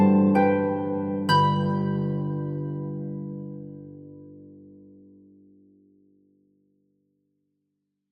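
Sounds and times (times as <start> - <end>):
harp: 0.0 - 5.0.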